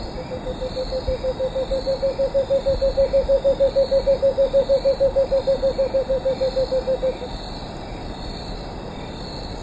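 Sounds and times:
cinnamon screech owl hooting in Ecuador: 0:00.1 - 0:07.3.

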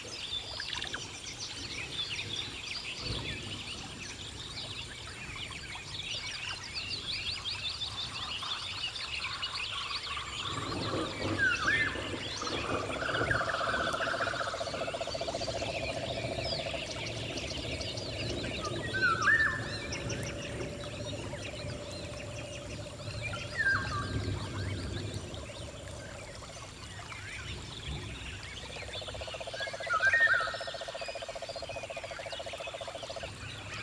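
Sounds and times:
rainfall in a rainforest: 0:00.0 - 0:33.8.

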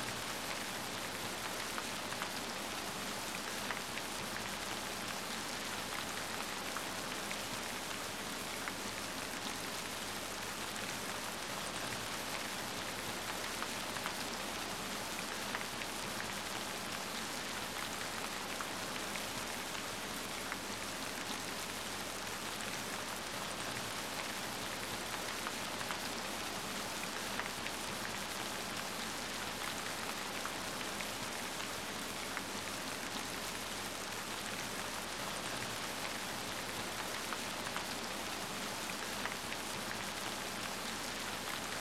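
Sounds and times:
rain: 0:00.0 - 0:41.7.

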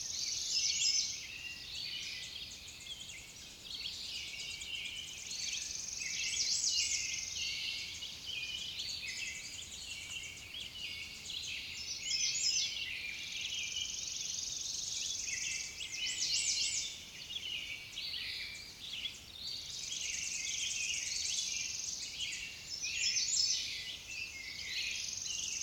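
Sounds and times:
songbirds in dense chorus of chirps, trills and whistles: 0:00.0 - 0:25.6.

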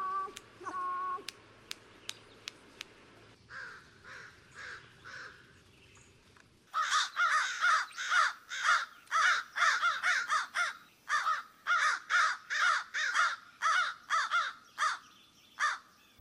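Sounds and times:
American crow cawing: 0:03.5 - 0:05.5, 0:06.7 - 0:15.0, 0:15.6 - 0:15.9.

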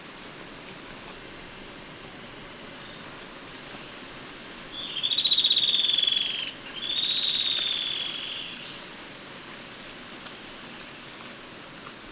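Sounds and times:
yellow-breasted antwren calling: 0:04.8 - 0:08.8.

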